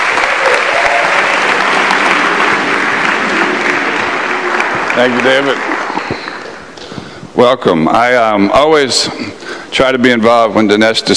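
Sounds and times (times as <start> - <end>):
audience applause for President Falwell at a Liberty University gathering: 0.0 - 6.8
speech: 5.0 - 5.7, 7.4 - 11.1.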